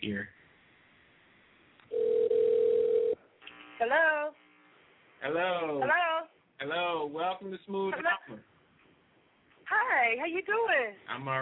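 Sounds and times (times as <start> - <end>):
telephone line ring tone: 1.9 - 3.2
speech: 5.2 - 8.5, 9.7 - 11.4.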